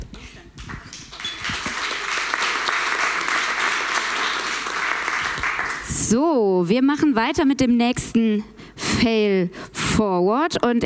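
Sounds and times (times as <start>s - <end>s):
audience applause: 0.7s - 5.9s
speech: 6.1s - 10.8s.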